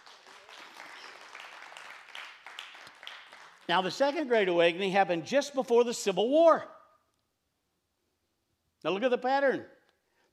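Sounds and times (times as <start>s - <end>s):
audience applause: 0.0s - 4.2s
speech: 3.7s - 6.8s, 8.8s - 10.3s.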